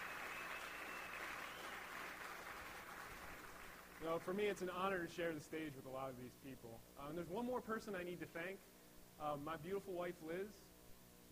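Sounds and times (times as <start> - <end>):
audience applause: 0.0 - 4.0
speech: 4.0 - 10.7.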